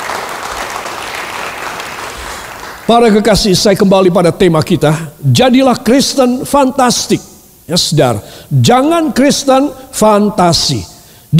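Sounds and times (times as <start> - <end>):
audience applause: 0.0 - 2.9
speech: 2.9 - 11.3.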